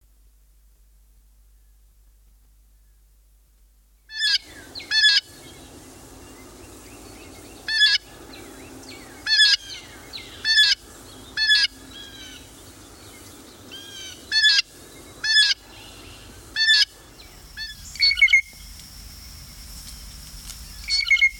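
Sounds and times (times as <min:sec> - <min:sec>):
blue jay harsh squawking calls: 0:04.1 - 0:05.3, 0:10.4 - 0:10.8, 0:11.4 - 0:12.3, 0:13.7 - 0:15.6, 0:16.6 - 0:18.5.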